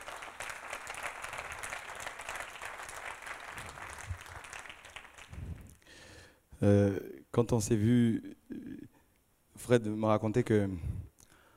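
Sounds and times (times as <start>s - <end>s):
audience applause: 0.0s - 5.8s
speech: 6.6s - 8.4s, 9.7s - 10.9s.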